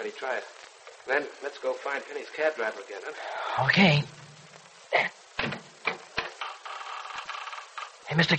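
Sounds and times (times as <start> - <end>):
speech: 0.1 - 4.2, 8.2 - 8.3
old door being opened: 5.4 - 8.0.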